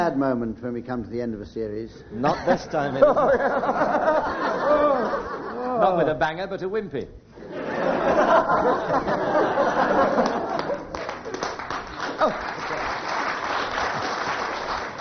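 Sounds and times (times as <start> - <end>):
speech: 0.0 - 7.2, 8.1 - 9.4
laughter: 2.3 - 5.8, 7.4 - 11.0
audience applause: 8.7 - 15.0.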